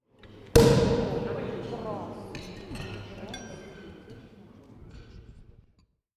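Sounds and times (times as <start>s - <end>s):
champagne boom: 0.6s - 1.7s.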